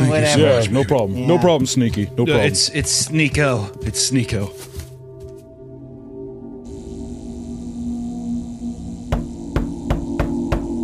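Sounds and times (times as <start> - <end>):
speech: 0.1 - 4.8
low electrical hum: 6.7 - 9.5
knocking on a door: 9.1 - 10.8.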